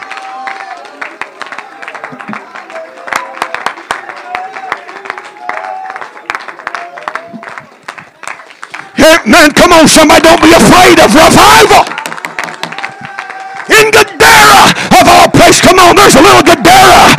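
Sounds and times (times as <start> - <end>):
audience clapping hands: 0.0 - 17.1
speech: 9.0 - 12.0.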